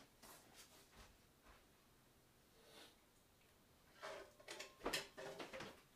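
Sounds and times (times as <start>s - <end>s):
utensils and cookware clattering while cooking tomato sauce pasta: 3.9s - 5.8s.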